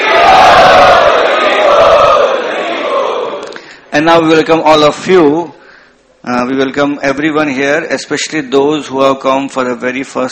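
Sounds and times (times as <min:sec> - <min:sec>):
crowd chanting loudly in unison to welcome guests at a youth festival: 0:00.0 - 0:03.5
speech: 0:04.0 - 0:05.6, 0:06.2 - 0:10.3.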